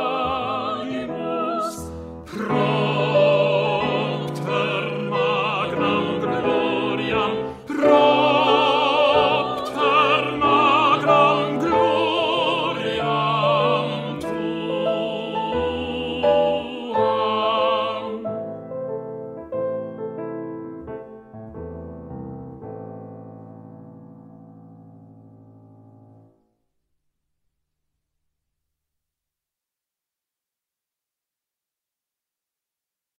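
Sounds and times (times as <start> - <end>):
tenor singing: 0.0 - 18.4.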